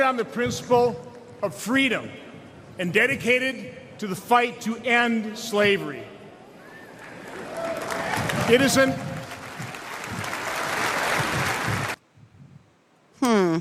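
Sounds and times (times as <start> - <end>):
speech: 0.1 - 6.1, 8.5 - 9.1
crowd reacting, cheering and applauding: 6.6 - 12.0.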